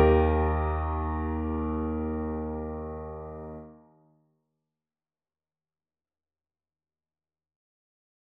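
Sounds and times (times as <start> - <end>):
cello sonata: 0.0 - 3.6.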